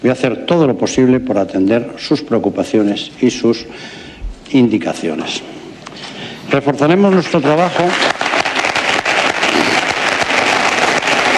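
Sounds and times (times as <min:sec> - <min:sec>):
speech: 0:00.0 - 0:05.6, 0:06.5 - 0:08.2
audience applause: 0:05.9 - 0:11.3.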